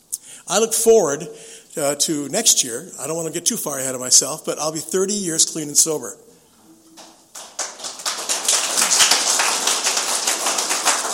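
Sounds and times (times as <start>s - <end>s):
speech: 0.5s - 6.3s
audience applause: 7.0s - 11.1s.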